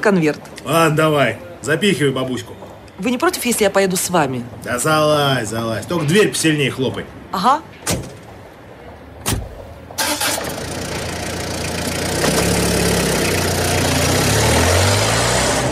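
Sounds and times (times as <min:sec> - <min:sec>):
speech: 0:00.0 - 0:08.0
Rafik minibus rattling its metal insides over bumps: 0:09.2 - 0:15.7.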